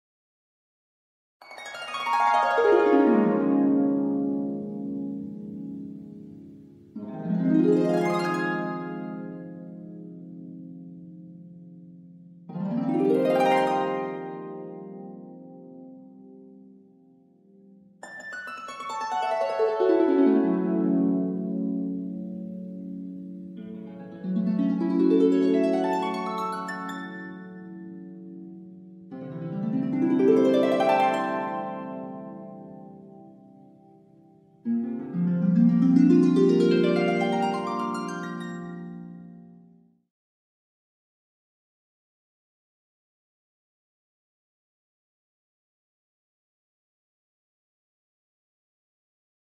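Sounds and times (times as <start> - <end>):
harp: 1.4 - 39.8.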